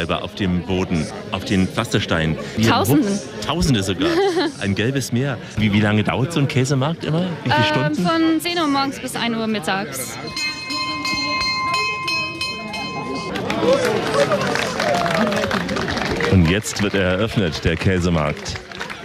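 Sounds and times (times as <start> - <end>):
speech: 0.0 - 10.6, 16.3 - 18.7
laughter: 2.1 - 6.4, 13.1 - 18.2
bell ringing to open cheese market: 10.1 - 13.9.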